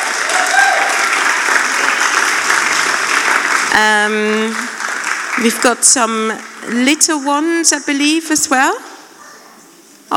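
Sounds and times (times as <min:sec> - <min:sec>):
audience applause: 0:00.0 - 0:06.6
speech: 0:03.8 - 0:04.6, 0:05.4 - 0:08.9.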